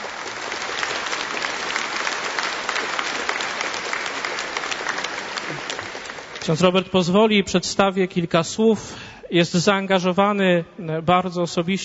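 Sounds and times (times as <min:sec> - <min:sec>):
audience applause: 0:00.0 - 0:06.6
speech: 0:06.4 - 0:11.8.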